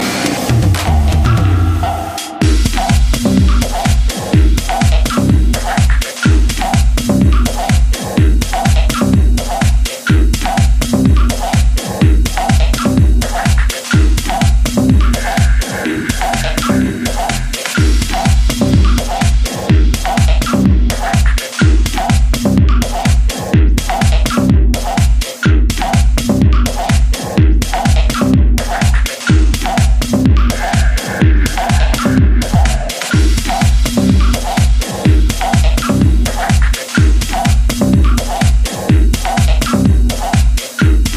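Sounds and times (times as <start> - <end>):
techno music: 0.0 - 41.1.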